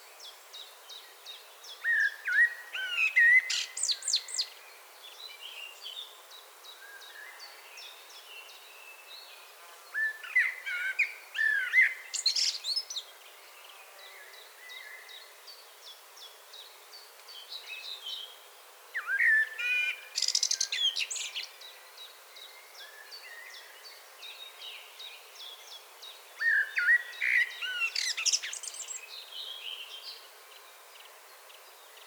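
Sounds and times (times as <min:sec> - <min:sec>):
common blackbird song: 0:00.2 - 0:18.4, 0:19.0 - 0:32.0.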